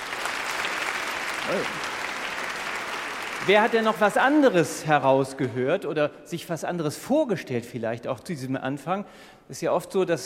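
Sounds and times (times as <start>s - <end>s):
audience applause: 0.0s - 4.7s
speech: 1.5s - 1.9s, 3.4s - 10.2s.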